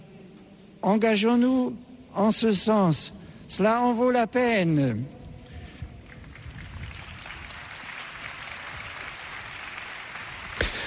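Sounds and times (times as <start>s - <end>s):
speech: 0.8s - 5.2s
crowd applause after the pope's appeal: 6.1s - 10.8s.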